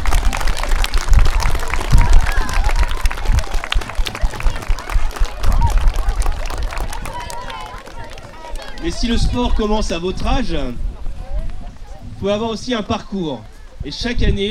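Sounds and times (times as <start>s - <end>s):
audience applause: 0.0s - 9.6s
speech: 8.9s - 10.9s, 12.2s - 14.4s.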